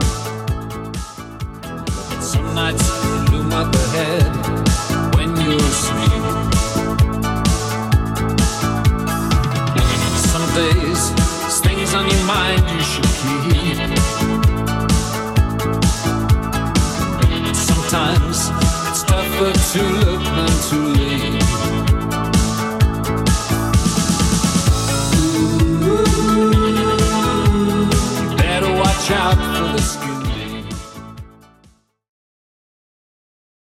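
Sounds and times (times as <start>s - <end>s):
80s drum machine beat: 0.0s - 30.9s.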